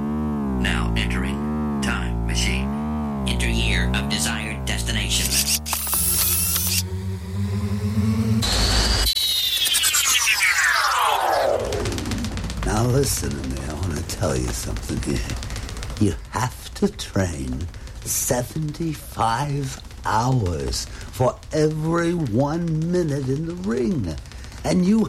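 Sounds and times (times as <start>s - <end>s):
long swooping downward pitch sweep: 0.0s - 14.1s
warbling time machine sound effect: 0.0s - 16.0s
harsh buzzing rush: 0.0s - 23.6s
speech: 0.6s - 1.4s, 3.4s - 5.8s, 13.1s - 13.6s, 14.2s - 25.0s.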